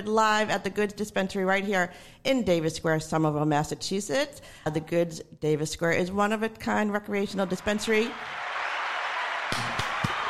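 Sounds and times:
speech: 0:00.0 - 0:08.4
live audience applause: 0:07.5 - 0:10.2.

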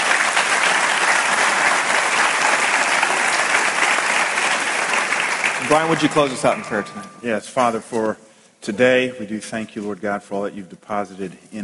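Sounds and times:
audience applause for panel: 0:00.0 - 0:07.0
speech: 0:05.7 - 0:11.6.

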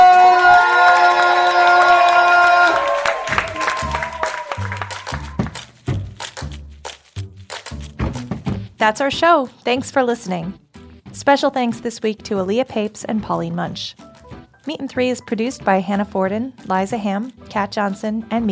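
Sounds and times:
audience applause and cheering: 0:00.0 - 0:06.3
steady thumping beat: 0:03.4 - 0:10.6
speech: 0:08.8 - 0:10.6, 0:11.2 - 0:18.5.

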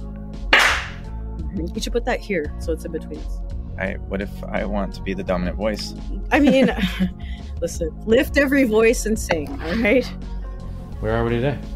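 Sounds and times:
hand clap to mark recording: 0:00.5 - 0:01.1
speech: 0:01.6 - 0:10.4, 0:11.0 - 0:11.7
laughter: 0:05.6 - 0:07.4, 0:09.3 - 0:10.1.

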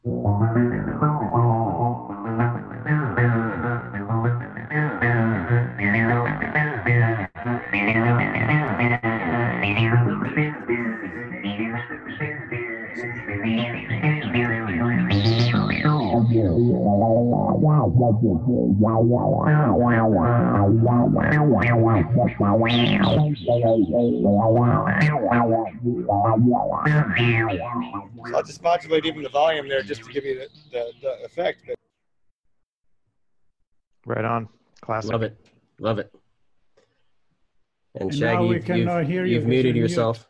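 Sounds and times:
303 synthesizer acid bass bark: 0:00.0 - 0:28.6
speech: 0:00.2 - 0:01.6, 0:18.2 - 0:31.8, 0:34.1 - 0:36.2, 0:38.0 - 0:40.2.

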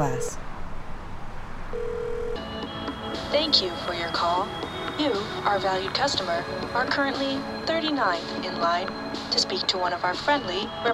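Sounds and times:
speech: 0:00.0 - 0:00.5, 0:03.3 - 0:10.9
telephone keypad tones: 0:01.8 - 0:02.4.

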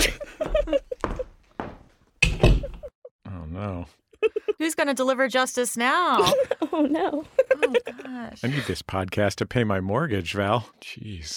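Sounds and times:
laughter: 0:00.0 - 0:01.3, 0:06.2 - 0:08.9
door slamming: 0:02.2 - 0:02.8
speech: 0:04.6 - 0:11.3.

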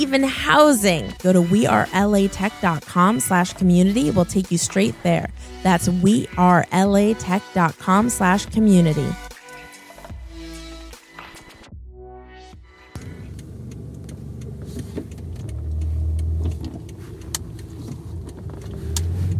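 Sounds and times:
speech: 0:00.0 - 0:09.2
car engine and road rumble while driving: 0:12.9 - 0:19.3.

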